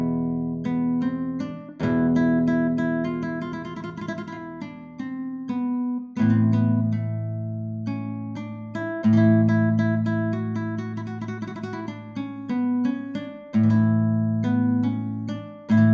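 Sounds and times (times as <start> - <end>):
Spanish guitar improvisation: 0.0 - 15.9.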